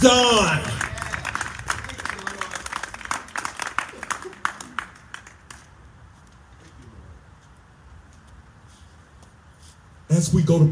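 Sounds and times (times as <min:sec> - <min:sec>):
audience clapping: 0:00.2 - 0:05.8.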